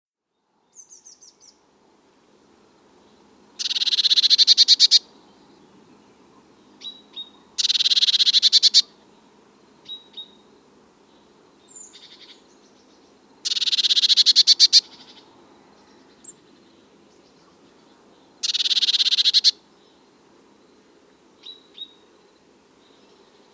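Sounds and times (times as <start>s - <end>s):
Eurasian blue tit call: 3.6s - 5.2s, 6.3s - 9.0s, 11.8s - 12.6s, 13.4s - 15.3s, 18.4s - 19.6s.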